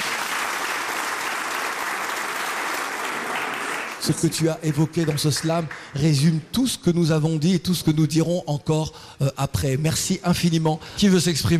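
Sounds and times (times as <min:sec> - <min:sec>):
audience applauding a slam performer: 0:00.0 - 0:06.0
speech: 0:04.0 - 0:11.5.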